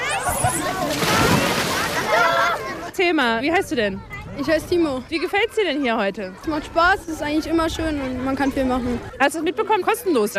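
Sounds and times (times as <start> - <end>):
water splashing and sloshing in a busy outdoor swimming pool: 0.0 - 2.9
speech: 3.0 - 10.3.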